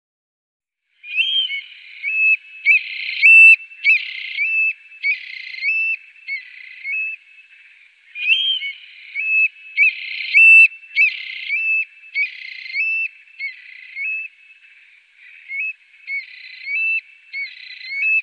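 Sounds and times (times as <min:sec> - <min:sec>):
Eurasian stone-curlew whistles: 0:01.0 - 0:07.2, 0:08.2 - 0:14.3, 0:15.5 - 0:18.2.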